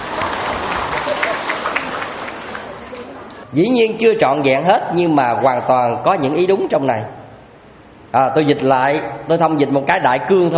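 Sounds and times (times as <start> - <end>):
audience applause: 0.0 - 3.4
speech: 3.5 - 7.2, 8.1 - 10.5.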